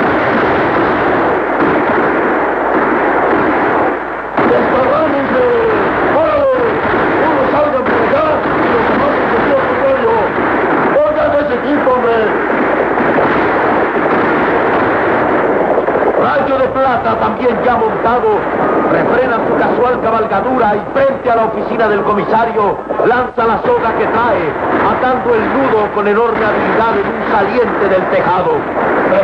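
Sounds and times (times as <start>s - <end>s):
gunshots fired by outlaws on horseback: 0.0s - 29.2s
speech: 20.1s - 29.2s.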